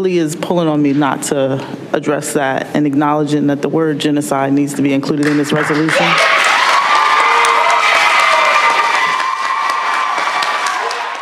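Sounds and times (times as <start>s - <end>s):
speech: 0.0s - 6.4s
audience applauding and cheering: 5.3s - 11.2s.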